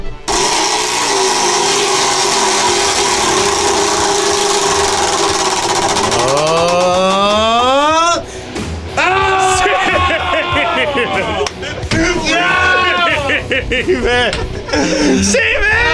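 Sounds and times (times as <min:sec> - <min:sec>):
wheel of punishment spinning: 0:00.3 - 0:07.8
laughter: 0:09.3 - 0:15.9.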